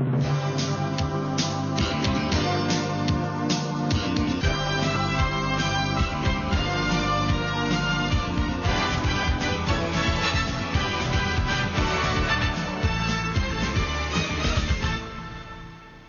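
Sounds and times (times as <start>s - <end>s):
news programme opening jingle: 0.2s - 15.7s.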